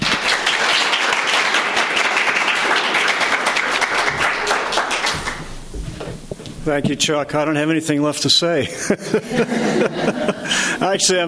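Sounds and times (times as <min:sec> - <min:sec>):
audience applause welcoming an author at a book event in Denver: 0:00.0 - 0:05.8
speech: 0:06.6 - 0:11.2
laughter: 0:08.6 - 0:10.8.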